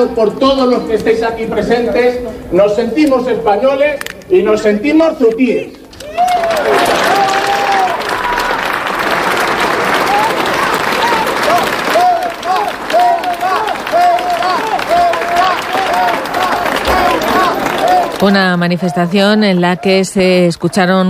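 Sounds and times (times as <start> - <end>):
speech: 0.0 - 7.1, 18.2 - 21.0
applause from audience at a public event: 6.1 - 20.1.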